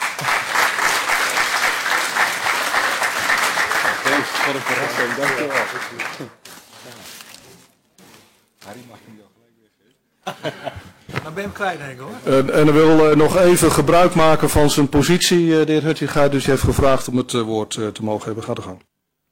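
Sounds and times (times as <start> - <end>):
applause: 0.0 - 6.4
speech: 4.5 - 7.2, 8.7 - 9.4, 10.3 - 18.9
laughter: 10.2 - 11.1.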